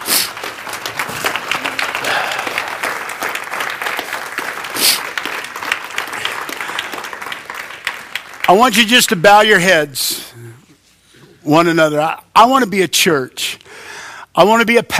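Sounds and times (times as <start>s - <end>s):
audience clapping: 0.0s - 9.7s
speech: 8.5s - 10.2s, 11.4s - 13.5s, 14.4s - 14.9s.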